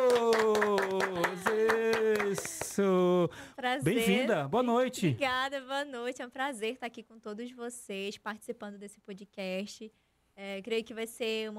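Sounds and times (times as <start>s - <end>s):
clapping: 0.0s - 2.8s
speech: 2.8s - 11.5s.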